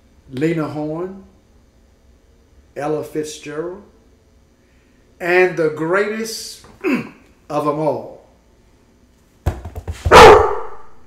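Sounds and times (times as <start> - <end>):
speech: 0.3 - 1.3, 2.8 - 3.9, 5.2 - 8.2
excited dog barking: 10.1 - 11.0.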